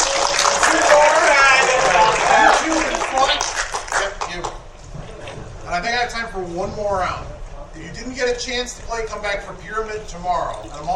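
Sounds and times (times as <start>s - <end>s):
excited voices and whoops: 0.0s - 3.4s
audience applause: 0.0s - 4.6s
speech: 6.6s - 10.9s.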